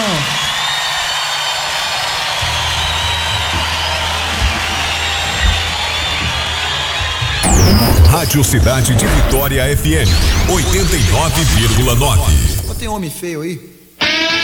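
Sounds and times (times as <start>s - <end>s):
audience applause: 0.0s - 7.4s
speech: 8.3s - 13.8s.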